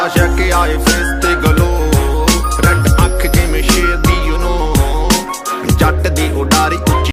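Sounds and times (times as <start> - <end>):
Punjabi ringtone: 0.2 - 7.1.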